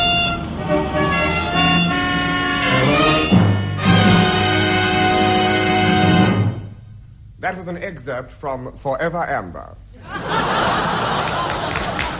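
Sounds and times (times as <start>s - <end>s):
car horns honking in jammed traffic: 0.0s - 6.7s
speech: 7.4s - 10.3s
laughter: 10.0s - 12.1s.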